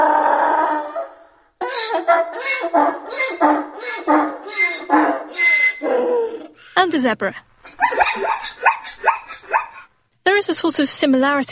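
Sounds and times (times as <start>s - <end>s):
donkey braying: 0.0s - 6.7s, 7.7s - 9.9s
speech: 6.9s - 7.5s, 10.6s - 11.4s.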